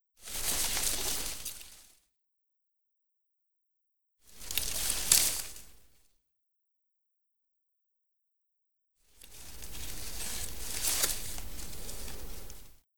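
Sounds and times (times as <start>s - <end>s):
leaves: 0.2s - 1.9s, 4.3s - 5.8s, 9.2s - 12.8s.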